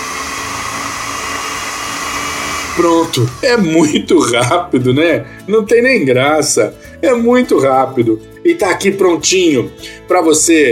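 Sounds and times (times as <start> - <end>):
food processor blending pesto-like paste: 0.0 - 4.0
speech: 2.8 - 10.6.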